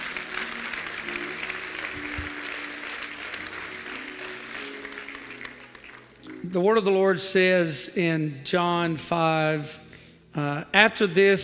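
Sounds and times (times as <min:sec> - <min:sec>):
audience applauding: 0:00.0 - 0:06.4
speech: 0:06.5 - 0:09.8, 0:10.4 - 0:11.4.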